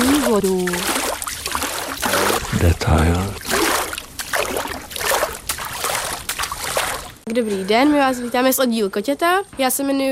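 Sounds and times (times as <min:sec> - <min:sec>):
peat bog water splashed by hand at a sluice: 0:00.0 - 0:07.2
speech: 0:00.3 - 0:01.0, 0:02.6 - 0:03.4, 0:07.3 - 0:10.1.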